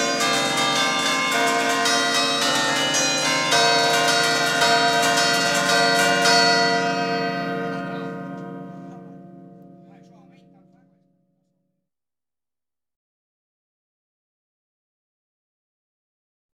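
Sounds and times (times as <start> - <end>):
bells ringing: 0.0 - 11.0.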